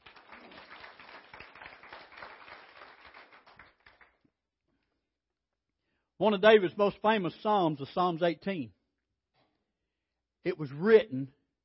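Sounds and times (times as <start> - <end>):
audience hand clapping: 0.0 - 4.3
speech: 6.2 - 8.8, 10.4 - 11.4.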